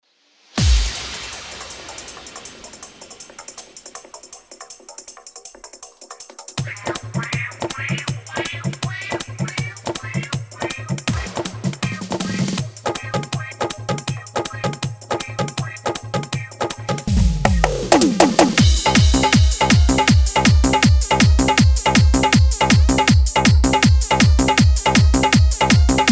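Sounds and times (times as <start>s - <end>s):
dholki bass dance mix: 0.6s - 26.1s.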